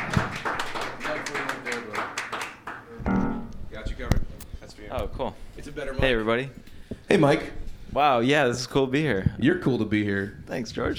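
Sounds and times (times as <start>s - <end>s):
audience clapping: 0.0s - 2.9s
speech: 5.2s - 10.9s.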